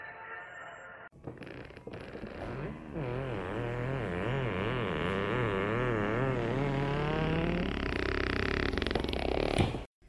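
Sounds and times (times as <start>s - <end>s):
sofa creaking: 1.1s - 9.9s.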